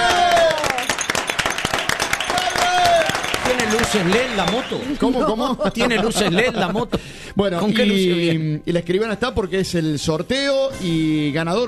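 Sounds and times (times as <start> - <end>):
crowd applauding: 0.0 - 6.0
laughter: 3.6 - 8.4
speech: 3.8 - 11.6.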